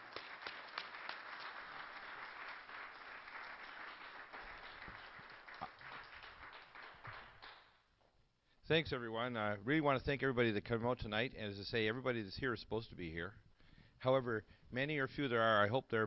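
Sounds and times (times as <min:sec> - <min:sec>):
audience applause at the Granada Forum: 0:00.0 - 0:07.7
speech: 0:08.7 - 0:13.4, 0:14.0 - 0:16.0.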